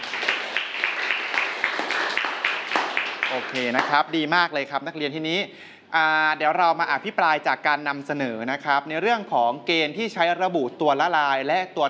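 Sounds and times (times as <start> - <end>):
students clapping: 0.0 - 4.1
speech: 3.3 - 11.8.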